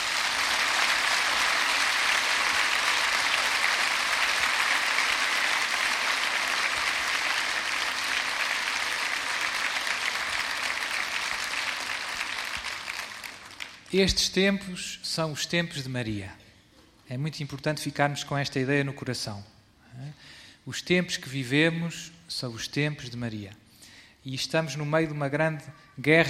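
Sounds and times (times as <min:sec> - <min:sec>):
audience applause: 0:00.0 - 0:13.9
speech: 0:13.9 - 0:16.4, 0:17.1 - 0:23.6, 0:24.2 - 0:26.2.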